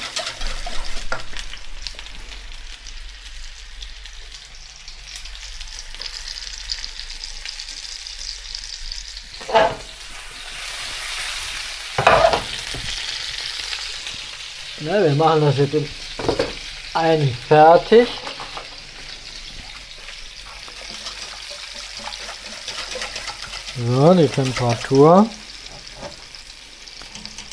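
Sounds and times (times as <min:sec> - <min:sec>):
stirring utensil scraping and knocking against the pan: 0:00.0 - 0:01.2, 0:09.4 - 0:11.4, 0:20.5 - 0:26.3
chicken juices sizzling in a hot pan: 0:00.0 - 0:27.5
speech: 0:09.5 - 0:09.8, 0:14.8 - 0:16.3, 0:17.0 - 0:18.2, 0:23.8 - 0:25.4.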